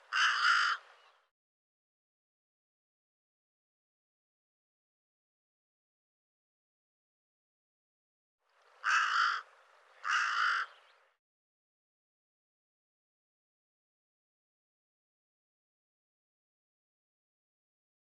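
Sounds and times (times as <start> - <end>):
bird giving harsh raspy caws: 0.0 - 1.2, 8.6 - 11.0.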